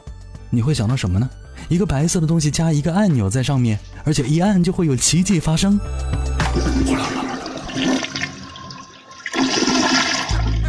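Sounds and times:
speech: 0.5s - 8.1s
toilet flushing: 6.4s - 10.6s.

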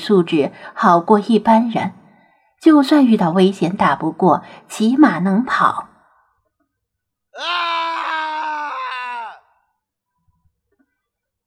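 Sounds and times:
speech: 0.0s - 2.0s, 2.6s - 5.9s
long distant scream of agony: 7.3s - 9.8s.

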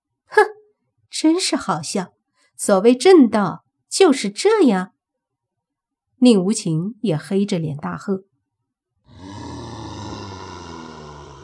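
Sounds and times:
speech: 1.2s - 4.9s, 6.2s - 8.3s
Nian beast roaring: 9.1s - 11.4s.

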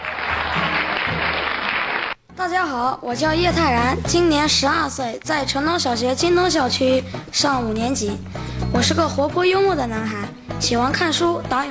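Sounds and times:
audience applause: 0.0s - 2.2s
speech: 2.5s - 11.6s.

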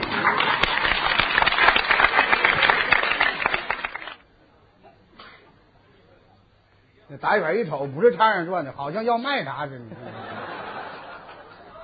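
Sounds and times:
audience applause: 0.0s - 4.2s
speech: 7.2s - 10.2s
laughter: 9.8s - 11.8s.

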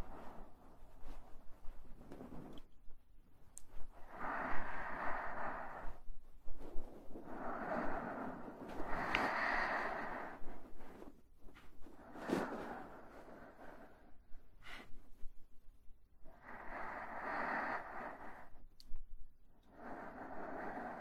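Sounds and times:
slow airy breathing: 3.9s - 15.3s, 16.2s - 18.7s, 19.6s - 21.0s.

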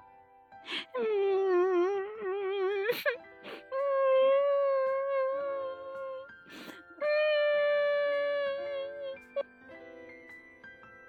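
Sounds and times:
little girl crying: 0.7s - 9.5s.

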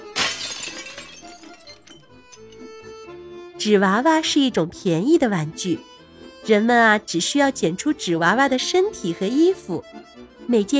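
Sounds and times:
porcelain doll shattering: 0.0s - 2.9s
speech: 3.6s - 10.7s.

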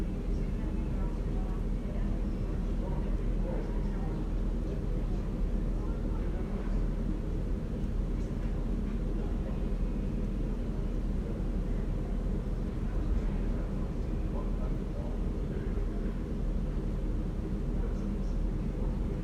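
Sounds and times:
air conditioner outdoor unit droning in a courtyard: 0.0s - 19.2s
faint conversation: 0.0s - 19.2s.

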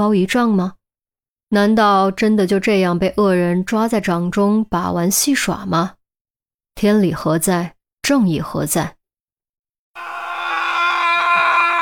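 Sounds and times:
speech: 0.0s - 0.8s, 1.5s - 6.0s, 6.8s - 9.0s
furious roar like a mad lion: 10.0s - 11.7s.

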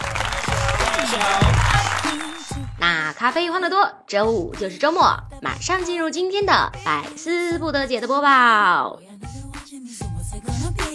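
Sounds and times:
crowd applause: 0.0s - 2.8s
speech: 1.1s - 1.6s, 2.8s - 9.1s.

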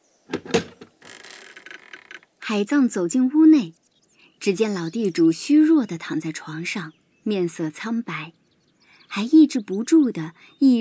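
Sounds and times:
door creaking open: 0.3s - 2.3s
speech: 2.5s - 3.8s, 4.4s - 8.4s, 9.1s - 10.7s.

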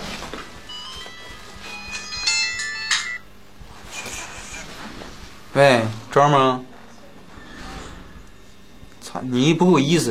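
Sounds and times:
phone call ringing tone: 0.6s - 3.3s
speech: 5.6s - 6.7s, 9.2s - 10.0s.

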